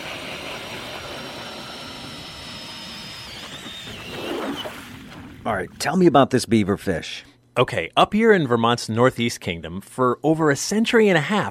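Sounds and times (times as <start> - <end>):
powered ice auger drilling through ice: 0.0 - 5.4
speech: 5.5 - 11.4.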